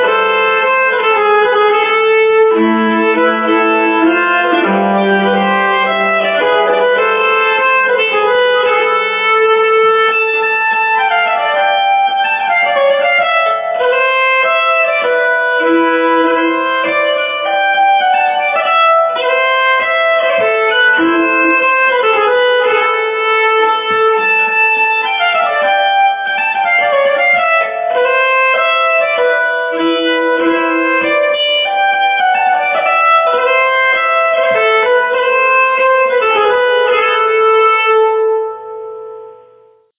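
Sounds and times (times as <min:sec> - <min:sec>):
nyckelharpa playing a polska folk dance: 0:00.0 - 0:39.9.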